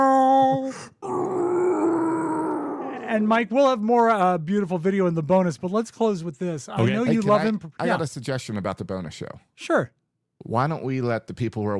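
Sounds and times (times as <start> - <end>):
slowed-down screaming child: 0.0 - 3.1
speech: 3.2 - 11.7.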